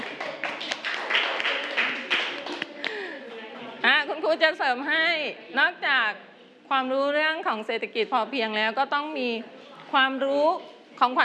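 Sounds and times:
classroom of children clapping: 0:00.0 - 0:03.0
speech: 0:04.3 - 0:11.2.

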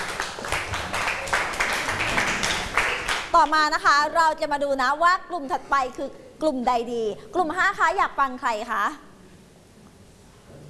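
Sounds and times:
classroom applause: 0:00.0 - 0:03.6
speech: 0:03.4 - 0:09.1.

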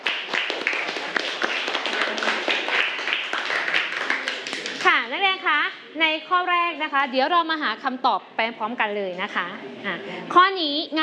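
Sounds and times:
class of students clapping hands: 0:00.0 - 0:04.9
speech: 0:06.2 - 0:11.0.

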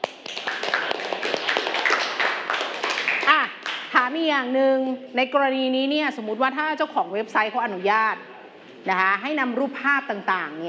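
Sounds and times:
classroom clapping: 0:00.0 - 0:04.0
speech: 0:04.1 - 0:10.6.

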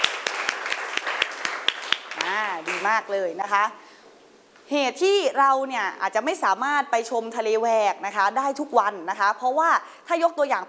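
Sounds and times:
classroom applause: 0:00.0 - 0:03.0
speech: 0:02.6 - 0:03.8, 0:04.7 - 0:10.6.

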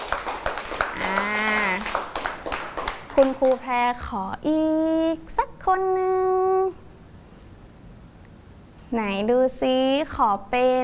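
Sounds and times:
children clapping hands: 0:00.0 - 0:03.7
speech: 0:03.2 - 0:06.8, 0:08.9 - 0:10.8.

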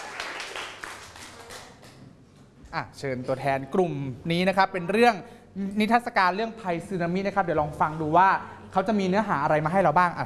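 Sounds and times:
group of students clapping together: 0:00.0 - 0:02.0
speech: 0:02.7 - 0:10.2.

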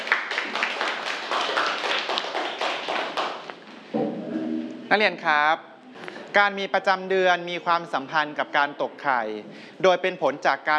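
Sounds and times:
classroom applause: 0:00.0 - 0:03.6
speech: 0:04.9 - 0:05.7, 0:06.3 - 0:10.7.

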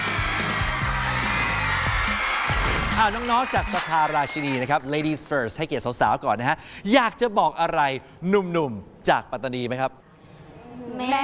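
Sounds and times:
audience applause: 0:00.0 - 0:05.8
speech: 0:03.0 - 0:10.0, 0:10.8 - 0:11.2.

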